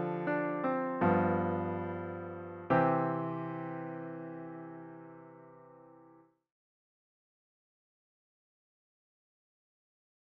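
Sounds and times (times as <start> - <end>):
piano music: 0.0 - 6.2.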